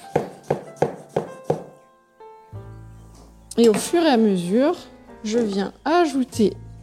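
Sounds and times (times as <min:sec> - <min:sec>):
knife chopping lettuce on a cutting board: 0:00.0 - 0:01.7
speech: 0:03.6 - 0:06.6.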